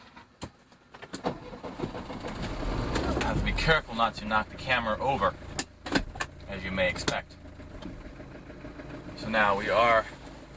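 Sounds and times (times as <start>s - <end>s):
car engine starting: 1.0s - 10.5s
speech: 3.5s - 5.4s, 6.5s - 7.4s, 9.2s - 10.2s.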